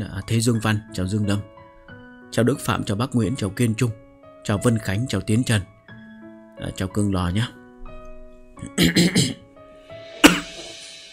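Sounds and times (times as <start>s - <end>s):
speech: 0.1s - 1.6s, 2.3s - 5.7s, 6.6s - 7.6s, 8.6s - 9.4s
narrator reading a story aloud coughing: 8.6s - 9.4s, 10.2s - 10.6s.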